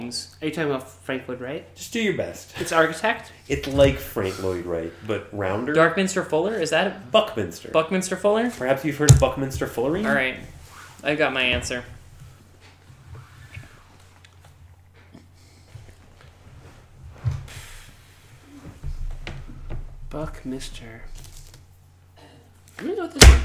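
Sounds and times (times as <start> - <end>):
speech: 0.1 - 12.0, 20.1 - 21.1, 22.8 - 23.4
hand slapping a table: 9.1 - 9.7
soft knocks: 9.1 - 9.8.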